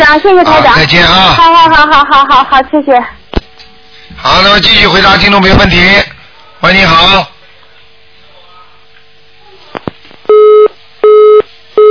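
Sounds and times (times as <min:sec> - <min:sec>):
speech: 0:00.1 - 0:03.2, 0:04.2 - 0:07.3
telephone busy tone after a caller hangs up: 0:10.3 - 0:11.9.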